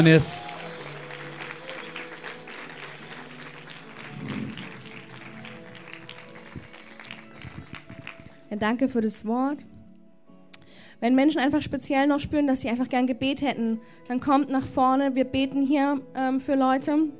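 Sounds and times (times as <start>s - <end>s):
speech: 0.0s - 0.6s, 8.5s - 9.7s, 11.0s - 17.1s
audience applause: 0.0s - 8.4s
sustained musical tones: 2.7s - 8.0s.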